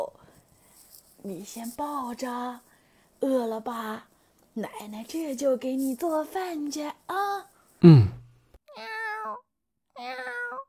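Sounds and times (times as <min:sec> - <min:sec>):
speech: 0:01.2 - 0:08.1
cat meowing: 0:08.7 - 0:09.4, 0:10.0 - 0:10.6.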